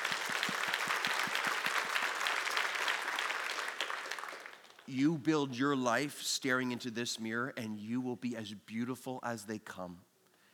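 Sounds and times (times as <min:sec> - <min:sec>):
crowd clapping: 0:00.0 - 0:04.9
speech: 0:04.9 - 0:10.1.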